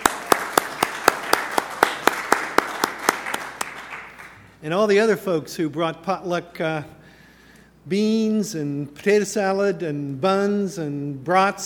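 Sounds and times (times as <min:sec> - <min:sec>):
applause: 0:00.0 - 0:04.6
speech: 0:04.6 - 0:07.0, 0:07.9 - 0:11.6.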